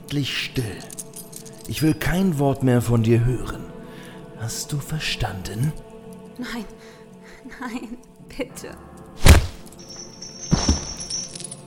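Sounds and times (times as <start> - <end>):
speech: 0.1 - 1.0, 1.6 - 3.7, 4.4 - 8.9
body thrown against a wall: 9.2 - 9.7, 10.5 - 11.1.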